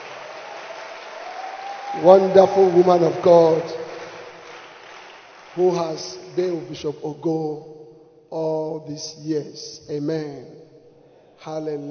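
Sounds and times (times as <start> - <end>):
audience clapping hands: 0.0 - 6.7
speech: 1.9 - 3.8, 5.6 - 7.7, 8.3 - 10.7, 11.4 - 11.8.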